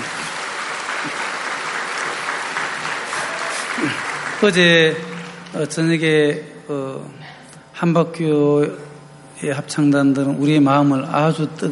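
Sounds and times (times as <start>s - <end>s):
applause from a large crowd for a choir: 0.0s - 6.1s
speech: 4.4s - 7.2s, 7.8s - 11.7s.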